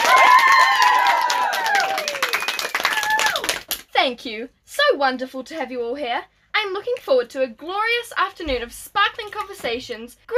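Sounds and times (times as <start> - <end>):
audience applause: 0.0 - 3.8
speech: 4.1 - 10.3.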